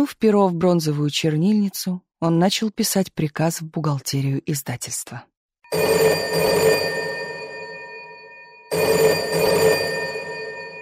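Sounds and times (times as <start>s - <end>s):
speech: 0.0s - 6.8s
telephone bell ringing: 5.7s - 10.8s.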